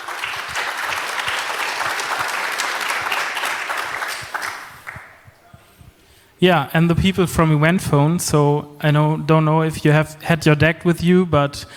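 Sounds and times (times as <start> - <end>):
audience applause: 0.0 - 5.2
speech: 6.4 - 11.7.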